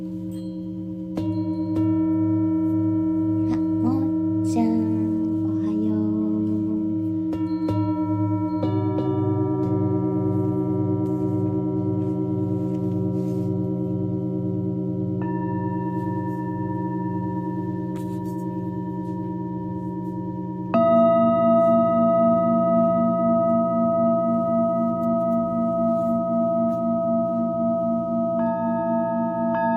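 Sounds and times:
singing bowls ringing in a sound-healing drone: 0:00.0 - 0:29.7.

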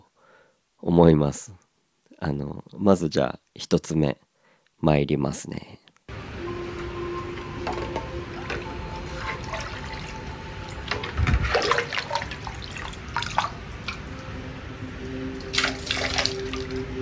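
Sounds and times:
speech: 0:00.8 - 0:06.2
water splash: 0:07.7 - 0:16.9.

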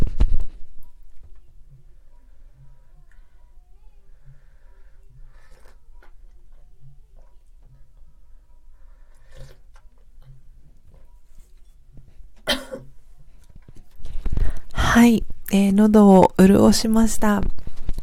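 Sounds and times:
person coughing after coffee went down the windpipe: 0:12.4 - 0:12.9
speech: 0:15.0 - 0:17.6.

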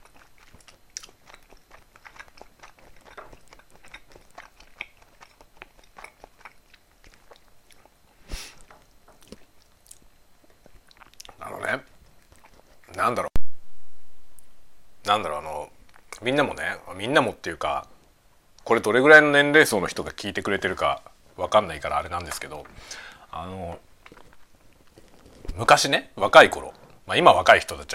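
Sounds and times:
chewing food: 0:00.0 - 0:13.1, 0:21.8 - 0:25.9
speech: 0:13.1 - 0:13.3, 0:15.1 - 0:15.5, 0:16.2 - 0:17.9, 0:18.7 - 0:23.8, 0:25.6 - 0:27.9.

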